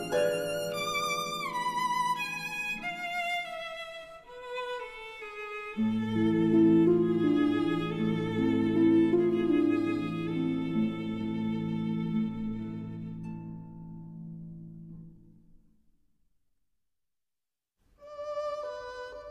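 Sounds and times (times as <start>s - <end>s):
berceuse for violin and harp: 0.0s - 14.2s, 18.0s - 19.2s.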